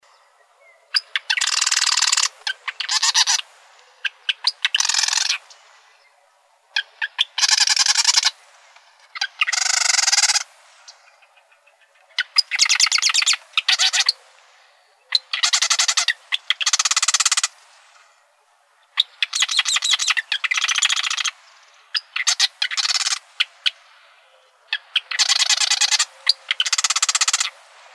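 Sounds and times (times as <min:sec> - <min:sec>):
marsh wren rattled song in Arizona: 0:00.9 - 0:06.0, 0:06.7 - 0:08.4, 0:09.1 - 0:14.2, 0:15.1 - 0:17.6, 0:18.8 - 0:23.9, 0:24.7 - 0:27.6.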